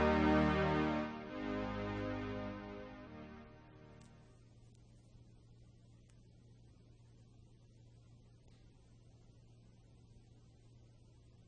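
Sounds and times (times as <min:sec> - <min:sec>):
echoing string and keyed instruments: 0:00.0 - 0:04.2.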